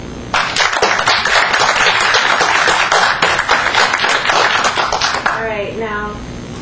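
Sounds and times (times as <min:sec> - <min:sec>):
audience clapping hands to vote: 0:00.3 - 0:05.5.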